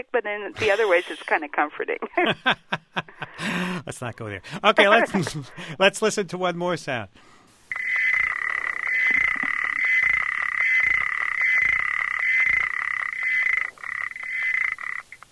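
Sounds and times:
speech: 0.0s - 7.4s
laughter: 2.2s - 3.8s, 4.7s - 5.7s
male frog trilling call: 7.7s - 15.3s.

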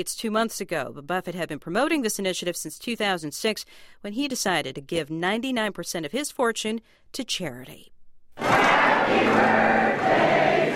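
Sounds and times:
speech: 0.0s - 10.5s
crowd singing a birthday song: 8.4s - 10.7s.

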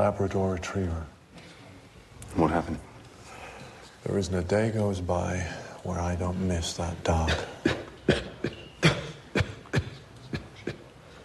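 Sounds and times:
speech: 0.0s - 1.2s, 2.3s - 2.9s, 4.0s - 7.6s
cough: 7.3s - 10.9s.

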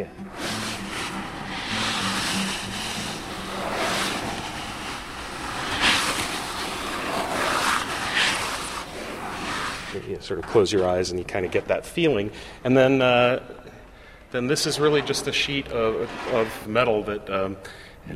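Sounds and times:
surf effect made by tilting a box of cat litter: 0.0s - 10.0s, 14.7s - 16.9s
speech: 10.2s - 13.7s, 14.3s - 18.1s.

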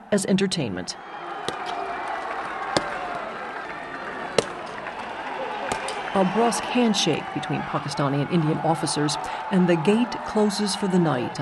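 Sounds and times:
speech: 0.1s - 1.3s, 6.1s - 11.4s
black-clad Pakistani rangers stomping: 1.1s - 9.8s.

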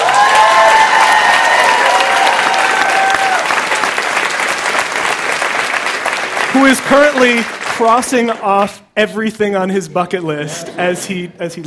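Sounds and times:
audience applause: 0.0s - 8.4s
speech: 6.9s - 11.6s.

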